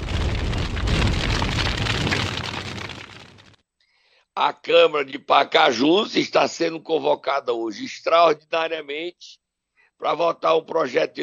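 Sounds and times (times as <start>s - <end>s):
bomb explosion sound effect: 0.0s - 3.6s
speech: 4.4s - 9.4s, 10.0s - 11.2s.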